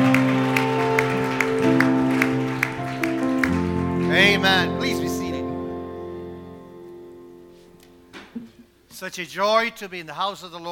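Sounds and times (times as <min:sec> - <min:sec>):
audience clapping: 0:00.0 - 0:05.4
speech: 0:09.0 - 0:10.7.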